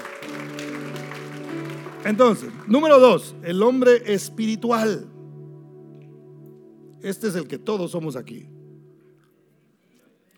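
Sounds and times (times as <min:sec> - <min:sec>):
audience applause: 0:00.0 - 0:03.3
speech: 0:02.0 - 0:05.1, 0:07.0 - 0:08.5.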